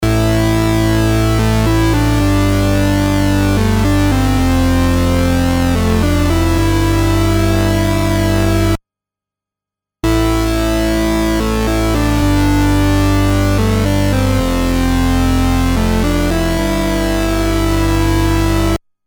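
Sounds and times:
pulse width modulation synth: 0:00.0 - 0:08.8, 0:10.0 - 0:18.8.

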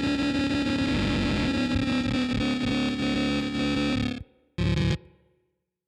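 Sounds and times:
4046 synthesizer arpeggiator: 0:00.2 - 0:05.1.

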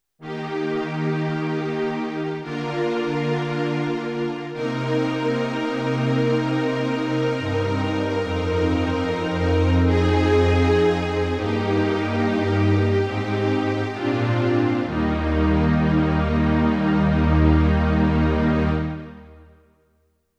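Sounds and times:
Yamaha NP32 strings: 0:00.2 - 0:19.7.

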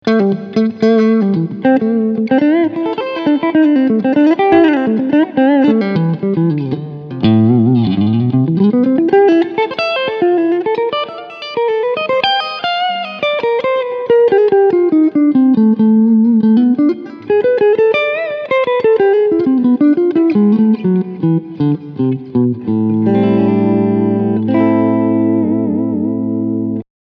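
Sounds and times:
clean electric guitar on front humbucker and single-coil pickups: 0:00.0 - 0:26.9.

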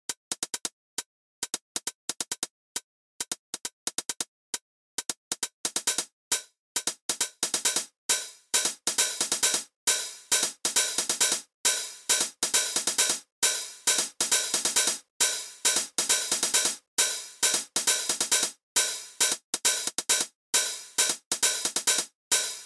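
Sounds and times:
Roland TR-09 drum machine hi-hats: 0:00.1 - 0:02.5, 0:03.2 - 0:22.6.

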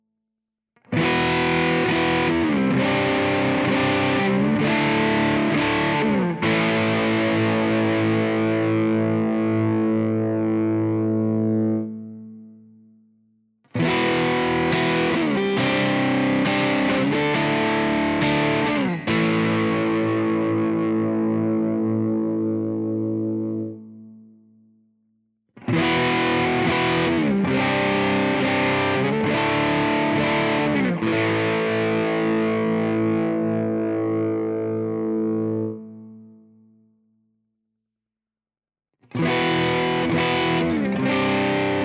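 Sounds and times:
crunch guitar chords in all positions: 0:00.8 - 0:12.5, 0:13.7 - 0:24.1, 0:25.6 - 0:36.4, 0:39.1 - 0:41.8.

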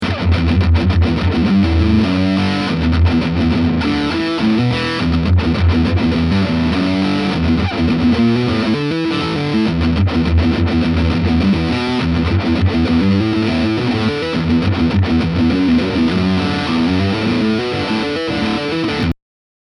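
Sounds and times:
fully distorted electric guitar on bridge pickup: 0:00.0 - 0:19.2.

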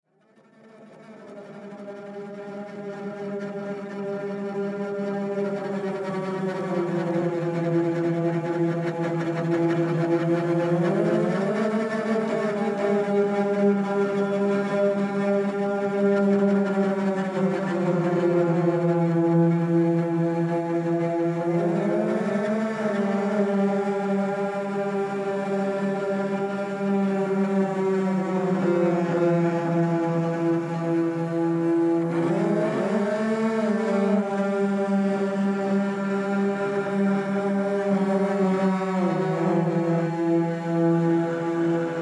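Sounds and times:
cello with PSP echo: 0:00.3 - 0:41.9.

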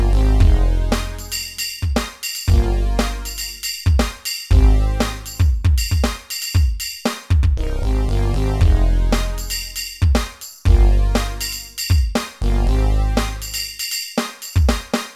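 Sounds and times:
Octapad electronic percussion pad: 0:00.1 - 0:07.1, 0:07.9 - 0:15.0.

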